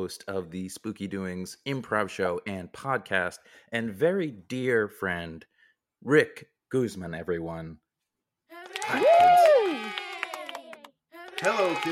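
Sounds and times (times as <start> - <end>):
speech: 0.0 - 7.8, 8.8 - 9.6, 11.4 - 11.8
scattered audience claps: 8.6 - 11.8.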